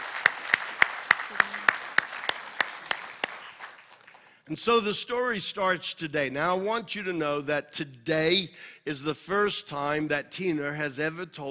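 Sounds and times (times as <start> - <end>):
audience clapping to welcome guests: 0.0 - 4.4
speech: 4.5 - 11.4.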